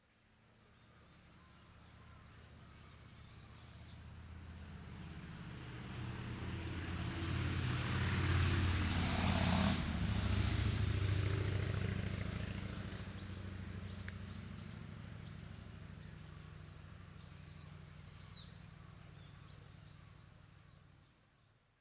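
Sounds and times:
motorbike passing by in a forest: 3.4s - 20.2s.

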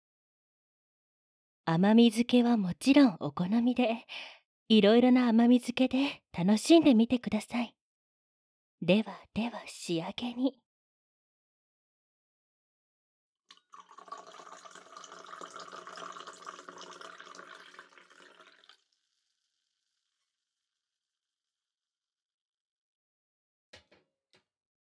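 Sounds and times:
speech: 1.7s - 7.8s, 8.8s - 10.6s
coffee and milk poured from a height into a cup: 13.5s - 19.4s.

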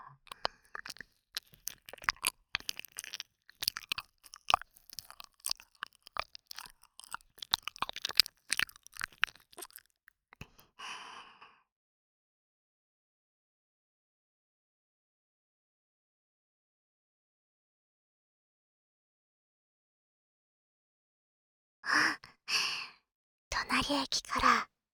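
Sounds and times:
wet saliva mouth sounds close to the ear: 0.3s - 10.0s, 23.6s - 24.6s
speech: 23.8s - 24.7s.

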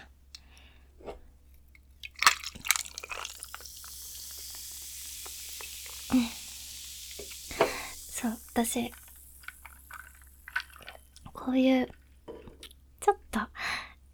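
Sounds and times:
ice clinking in a glass: 2.0s - 11.2s
speech: 6.1s - 6.4s, 8.2s - 9.0s, 11.5s - 12.0s.

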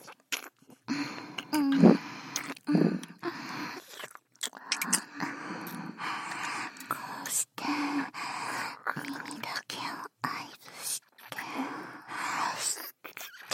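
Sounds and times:
ear licking on a binaural microphone: 0.0s - 6.9s
person whispering into both ears on a binaural microphone: 4.6s - 13.5s.

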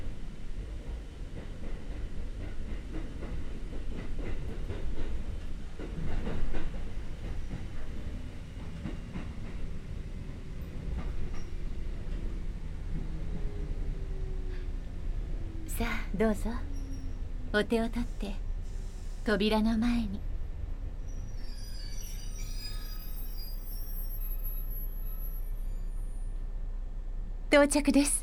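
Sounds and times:
train rumbling: 0.0s - 28.2s
speech: 15.8s - 16.7s, 17.5s - 18.4s, 19.2s - 20.3s, 27.5s - 28.2s.

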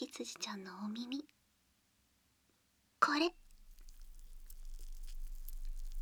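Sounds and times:
speech: 0.2s - 1.4s, 3.1s - 3.4s
Aphrodite foam fizzing and squishing against an ear in ASMR ear cleaning: 3.3s - 6.0s.

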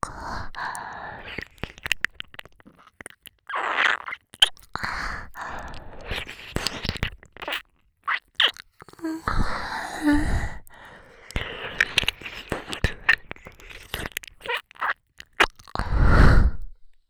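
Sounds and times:
ear licking: 0.6s - 15.8s
person moaning: 9.0s - 10.5s.

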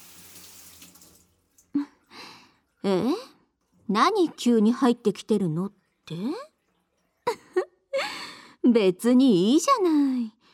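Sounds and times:
poured water splashing: 0.0s - 1.7s
water trickling in a bath: 0.0s - 2.9s, 4.7s - 7.7s
speech: 2.8s - 3.2s, 3.9s - 6.5s, 8.7s - 10.4s.

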